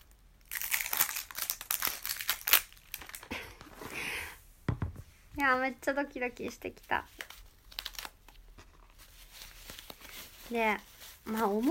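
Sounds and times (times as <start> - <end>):
crinkly plastic packaging being opened: 0.0 - 3.5, 6.7 - 11.6
speech: 5.4 - 7.2, 10.5 - 11.6.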